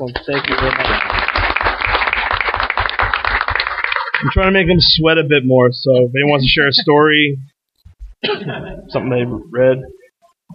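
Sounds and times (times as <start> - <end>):
speech: 0.0 - 1.4, 4.2 - 7.5, 8.2 - 10.0
crowd applause: 0.0 - 4.6.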